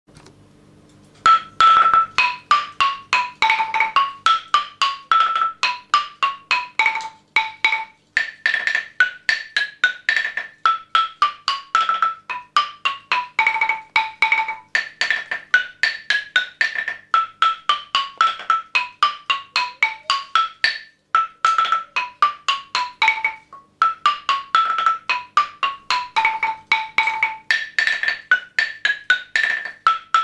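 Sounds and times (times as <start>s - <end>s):
xylophone: 1.2s - 30.2s.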